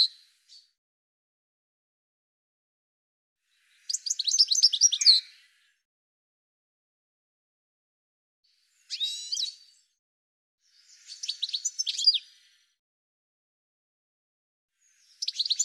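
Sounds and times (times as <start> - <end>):
birds chirping and twittering: 3.6 - 5.8, 8.5 - 10.0, 10.6 - 12.7, 14.8 - 15.6.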